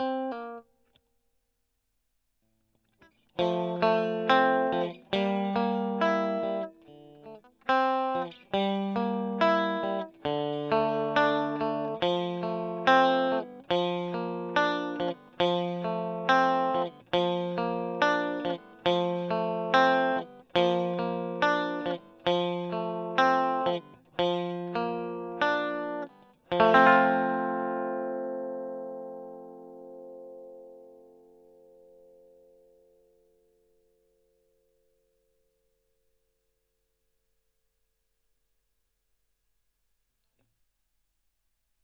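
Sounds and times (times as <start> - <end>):
electric guitar: 0.0 - 0.6, 3.0 - 33.3.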